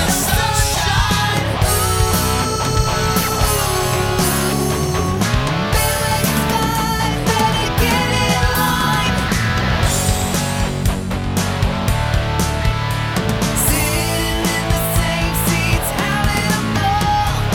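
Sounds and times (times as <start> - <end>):
electric karaoke music: 0.0 - 17.5.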